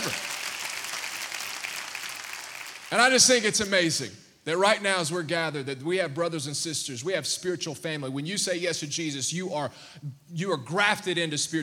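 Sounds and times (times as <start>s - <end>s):
audience hand clap of praise: 0.0s - 3.4s
speech: 2.9s - 11.6s.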